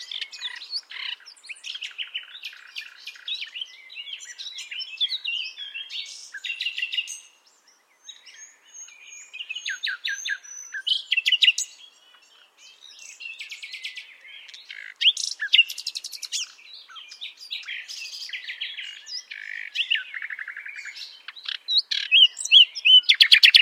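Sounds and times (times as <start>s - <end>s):
common nightingale singing: 0.0s - 23.6s.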